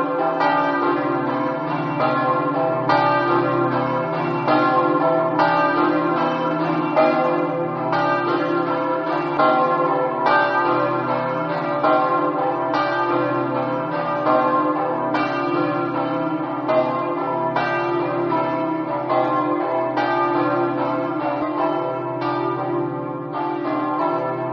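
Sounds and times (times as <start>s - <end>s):
bells ringing: 0.0s - 24.5s.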